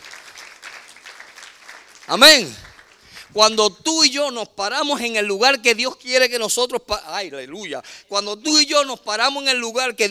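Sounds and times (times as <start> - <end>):
audience applause: 0.0 - 3.2
speech: 2.1 - 2.6, 3.3 - 10.0.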